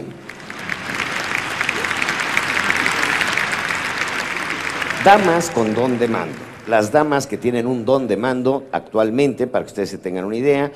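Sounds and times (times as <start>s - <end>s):
audience applause: 0.0s - 7.5s
speech: 5.0s - 10.7s.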